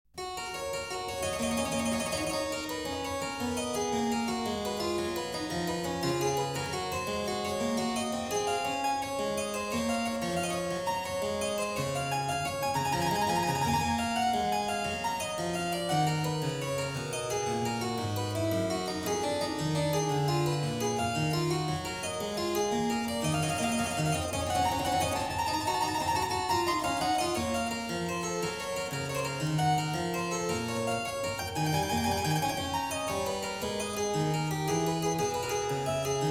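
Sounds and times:
prelude in F-sharp major on clavier: 0:00.2 - 0:36.3.

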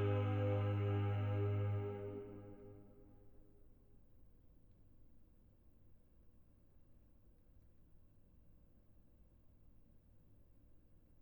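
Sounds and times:
organ chorale: 0:00.0 - 0:02.8.

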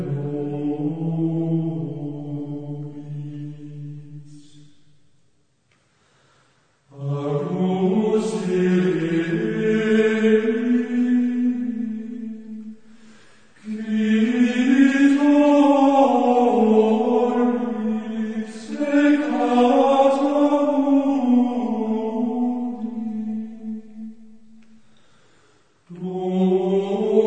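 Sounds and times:
Gregorian chant: 0:00.0 - 0:04.8, 0:06.9 - 0:24.7, 0:25.9 - 0:27.2.

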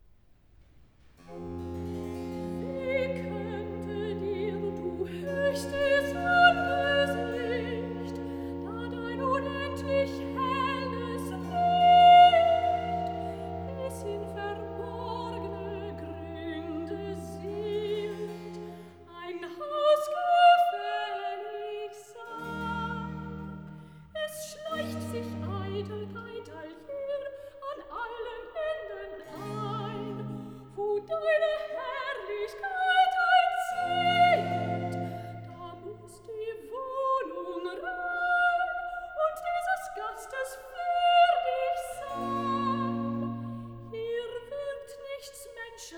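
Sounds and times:
soprano singing recitative: 0:02.3 - 0:45.9.

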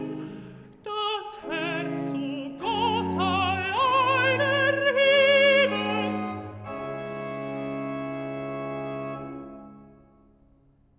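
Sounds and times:
alto singing recitative: 0:00.0 - 0:08.0.

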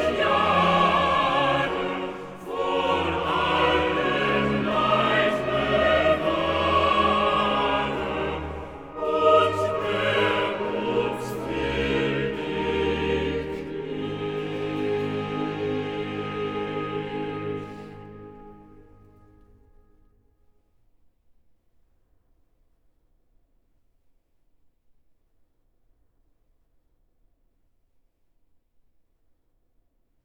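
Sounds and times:
choir singing a chorale: 0:00.0 - 0:19.5.

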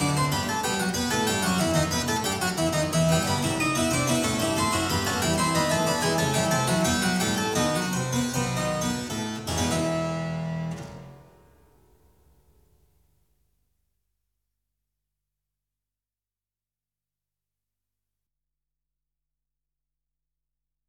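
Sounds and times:
fugue in E minor on clavier: 0:00.0 - 0:11.1.

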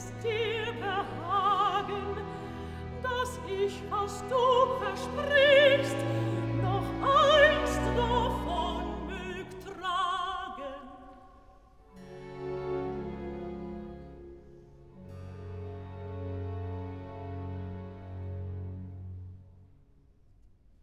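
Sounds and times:
alto singing: 0:00.0 - 0:11.2.

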